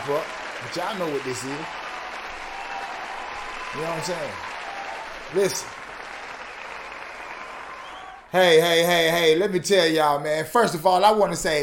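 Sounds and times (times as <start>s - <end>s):
audience applause at the opening of a variety show: 0.0s - 8.3s
speech: 0.1s - 1.8s, 3.7s - 4.4s, 5.3s - 5.8s, 8.3s - 11.6s.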